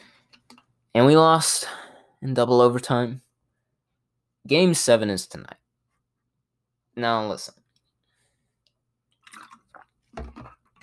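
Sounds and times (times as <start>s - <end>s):
speech: 1.0s - 3.2s, 4.4s - 5.6s, 7.0s - 7.6s
person drinking water: 9.2s - 10.8s.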